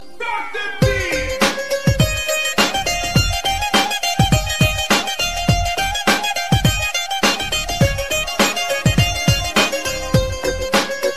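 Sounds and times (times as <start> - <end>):
music beat: 0.0 - 11.1.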